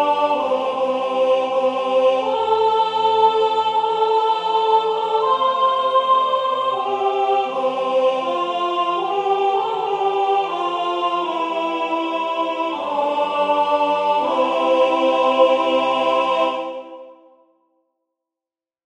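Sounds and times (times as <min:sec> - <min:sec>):
alto singing sacred music: 0:00.0 - 0:17.4.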